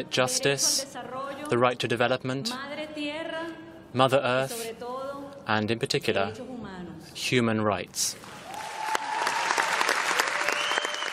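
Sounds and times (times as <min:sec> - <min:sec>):
speech: 0:00.0 - 0:03.1, 0:03.9 - 0:04.9, 0:05.5 - 0:06.5, 0:07.1 - 0:08.4
audience applause: 0:08.4 - 0:11.1.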